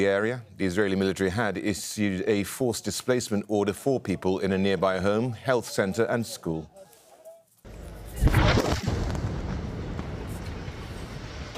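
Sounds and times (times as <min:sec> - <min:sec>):
speech: 0:00.0 - 0:06.9
Israeli airstrike explosion destroying a house in Al-Nusirat camp, Gaza: 0:08.2 - 0:11.5.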